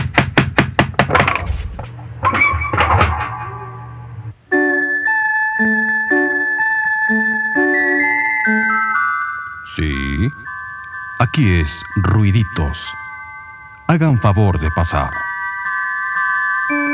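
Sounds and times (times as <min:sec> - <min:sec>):
sharp knocks on a door: 0:00.0 - 0:01.5
thumps: 0:00.0 - 0:04.3
bright tinkling jingle-like melody: 0:04.5 - 0:16.9
speech: 0:11.2 - 0:13.0, 0:13.9 - 0:15.2.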